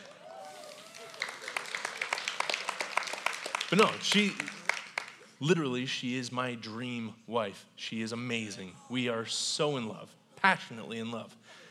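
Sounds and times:
crowd audience round of applause: 0:00.0 - 0:05.3
speech: 0:03.7 - 0:04.6, 0:05.4 - 0:11.6.

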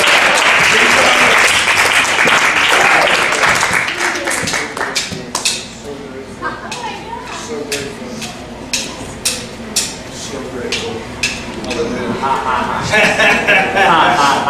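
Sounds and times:
crowd applause: 0:00.0 - 0:05.1
laughter: 0:06.2 - 0:07.2, 0:11.8 - 0:14.4.

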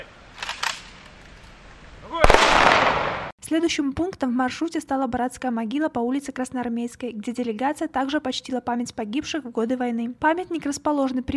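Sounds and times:
rifle salute volley: 0:02.0 - 0:03.3
speech: 0:03.5 - 0:11.3.

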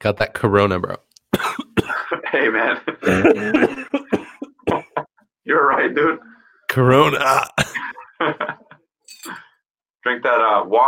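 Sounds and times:
speech: 0:00.0 - 0:01.7, 0:02.3 - 0:04.1, 0:05.5 - 0:08.6, 0:10.0 - 0:10.8
harsh raspy coughs: 0:01.3 - 0:02.2, 0:03.0 - 0:05.1, 0:07.0 - 0:08.1
laughter: 0:01.9 - 0:05.2, 0:07.2 - 0:08.9
faint higher clink or rustle: 0:09.1 - 0:09.4.

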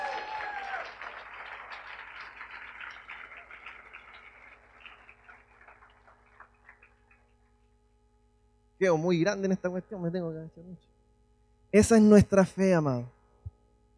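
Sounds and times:
crowd applauding: 0:00.0 - 0:07.5
speech: 0:08.8 - 0:10.9, 0:11.7 - 0:13.2.

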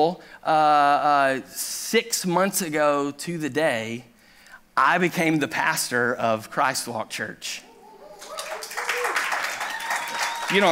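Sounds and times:
speech: 0:00.0 - 0:04.1, 0:04.8 - 0:07.7, 0:10.5 - 0:10.7
audience applause: 0:08.0 - 0:10.7.

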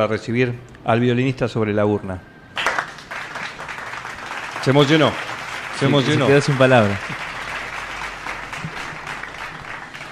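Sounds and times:
speech: 0:00.0 - 0:02.3, 0:04.6 - 0:07.3
audience applause: 0:02.6 - 0:10.0.

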